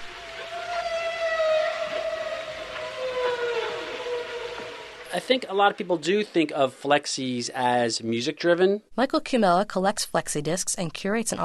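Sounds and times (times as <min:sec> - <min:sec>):
recorded whale song: 0:00.0 - 0:05.2
speech: 0:05.2 - 0:11.4.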